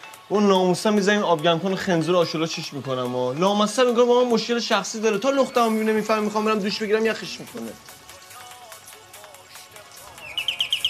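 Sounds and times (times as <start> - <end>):
speech: 0.3 - 8.0
peacock call: 10.1 - 10.8.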